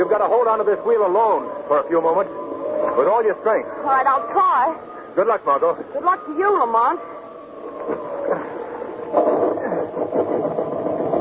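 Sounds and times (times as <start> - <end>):
speech: 0.0 - 7.1, 7.9 - 8.4
motor sputtering into life and chugging: 0.0 - 11.1.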